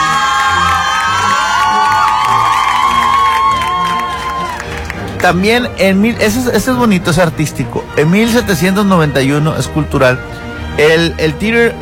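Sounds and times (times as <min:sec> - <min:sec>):
applause: 0:00.0 - 0:05.5
speech: 0:05.2 - 0:11.8.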